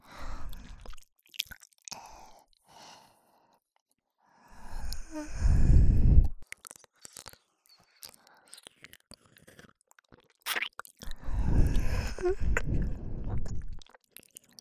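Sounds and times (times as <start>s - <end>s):
binaural candy licking ASMR: 6.4s - 14.5s.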